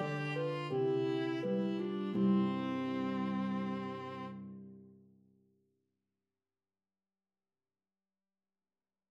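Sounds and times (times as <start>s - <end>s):
harp: 0.0s - 4.7s
viola melody: 0.0s - 4.8s.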